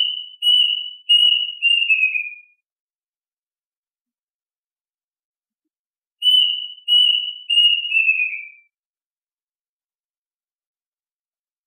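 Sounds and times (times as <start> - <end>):
duck whistled calls: 0.0 - 2.3, 6.2 - 8.6.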